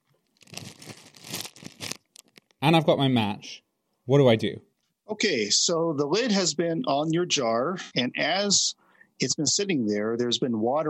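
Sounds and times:
ice cubes put into a plastic sandwich bag: 0.4s - 2.5s
speech: 2.6s - 10.8s.

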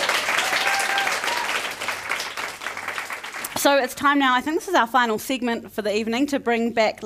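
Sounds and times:
audience applause at a live evening event: 0.0s - 3.6s
speech: 3.6s - 7.0s.

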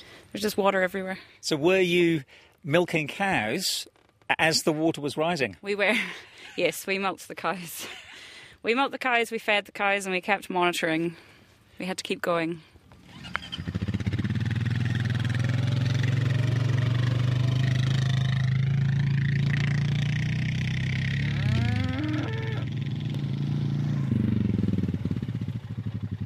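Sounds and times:
speech: 0.3s - 12.7s
truck engine running while unloading gravel: 13.1s - 26.2s.

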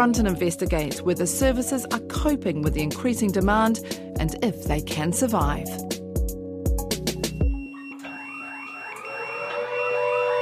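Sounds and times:
speech: 0.0s - 6.0s
pager alert going off: 7.3s - 10.3s.

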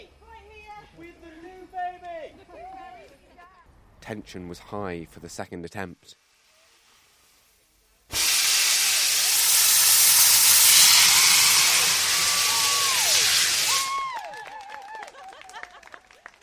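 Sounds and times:
speech: 4.1s - 6.2s
punt propelled by hissing sparks and flames: 6.0s - 14.1s
laughter: 14.5s - 16.2s.

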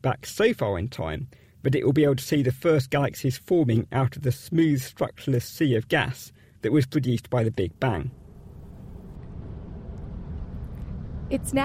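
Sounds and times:
speech: 0.0s - 8.2s, 11.3s - 11.6s
car driving along a very straight road after leaving Morawa: 7.7s - 11.6s.

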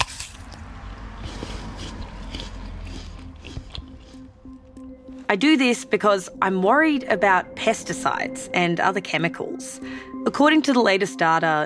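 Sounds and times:
biting into a Pink Lady apple: 0.0s - 4.6s
speech: 5.3s - 11.6s.

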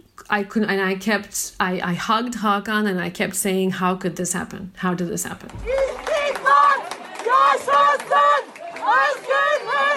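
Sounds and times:
speech: 0.3s - 6.6s
crowd chanting and shouting in a courtroom: 5.6s - 9.9s.

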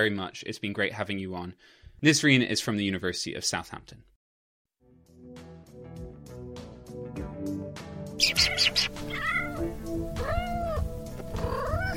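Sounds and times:
speech: 0.0s - 4.1s
rhythmic music: 5.0s - 11.9s
kitten meowing: 8.2s - 11.9s.

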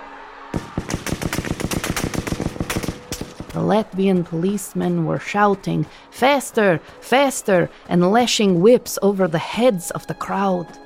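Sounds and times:
SS man opening fire: 0.5s - 3.8s
speech: 3.6s - 10.8s.

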